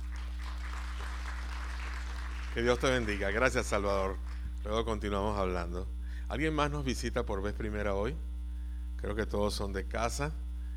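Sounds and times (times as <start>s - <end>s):
audience applause: 0.0s - 3.2s
speech: 2.6s - 8.3s, 9.0s - 10.4s.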